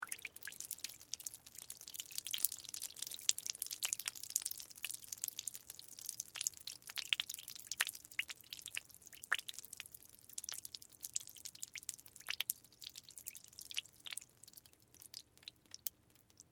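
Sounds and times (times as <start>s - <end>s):
water dripping: 0.0s - 16.4s.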